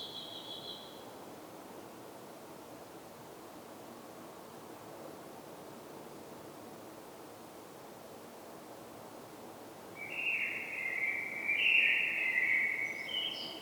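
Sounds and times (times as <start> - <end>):
Common blackbird song: 0.0 - 1.0, 10.0 - 13.6.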